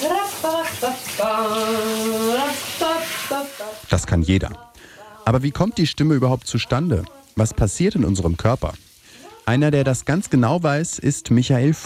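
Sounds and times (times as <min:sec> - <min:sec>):
shower water running: 0:00.0 - 0:04.0, 0:05.2 - 0:11.4
speech: 0:03.9 - 0:04.7, 0:05.3 - 0:08.9, 0:09.5 - 0:11.8.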